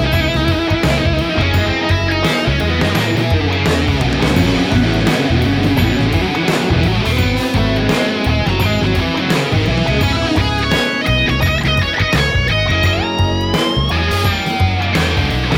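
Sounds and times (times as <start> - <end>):
high gain guitar tone: 0.0 - 15.5.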